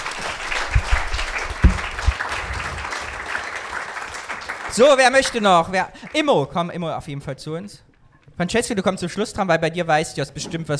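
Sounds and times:
crowd applauding: 0:00.0 - 0:06.3
speech: 0:04.8 - 0:10.7.

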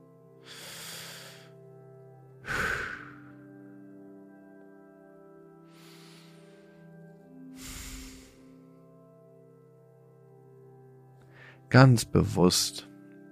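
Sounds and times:
quiet sustained musical drone: 0:00.0 - 0:09.2
slow deep breaths during a guided relaxation exercise: 0:00.4 - 0:01.6, 0:02.4 - 0:03.4, 0:05.7 - 0:06.9, 0:07.5 - 0:08.6
speech: 0:11.7 - 0:12.9.

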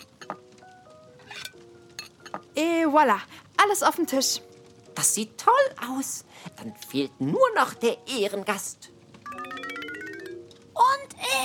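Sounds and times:
dishes and cutlery clinking while a table is set: 0:00.0 - 0:00.6, 0:01.2 - 0:02.6
speech: 0:02.6 - 0:08.9.

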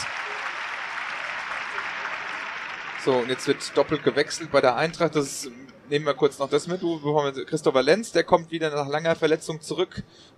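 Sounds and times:
large stadium crowd applause: 0:00.0 - 0:05.2
speech: 0:03.0 - 0:10.3.

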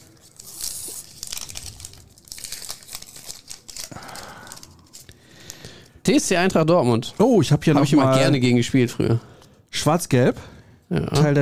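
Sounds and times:
card packet tearing open: 0:00.0 - 0:05.7
crinkly plastic foil of a card packet crinkling: 0:00.0 - 0:06.0
speech: 0:06.1 - 0:11.4.

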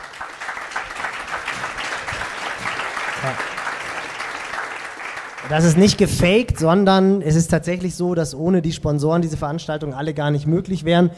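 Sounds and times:
short round of applause: 0:00.0 - 0:06.1
speech: 0:03.2 - 0:03.5, 0:05.4 - 0:11.1.

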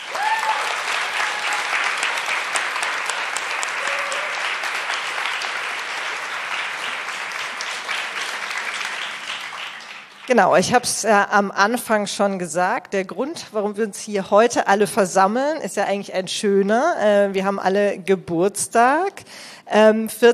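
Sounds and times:
audience applause for the panel: 0:00.0 - 0:10.4
speech: 0:10.3 - 0:20.3.

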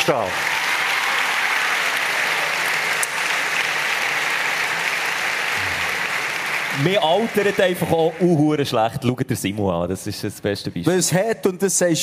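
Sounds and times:
audience applause: 0:00.0 - 0:09.0
speech: 0:00.1 - 0:00.6, 0:06.8 - 0:12.0.

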